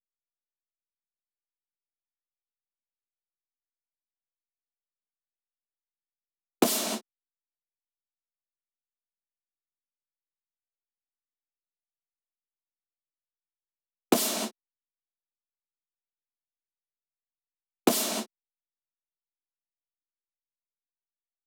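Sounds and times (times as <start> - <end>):
snare drum hits: 6.6 - 7.0, 14.2 - 14.6, 17.9 - 18.3.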